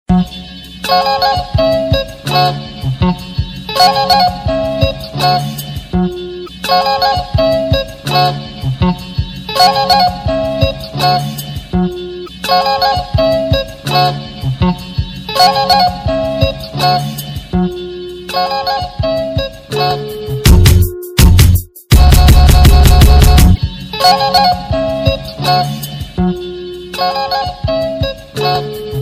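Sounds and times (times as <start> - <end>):
slow music: 0.1 - 29.0.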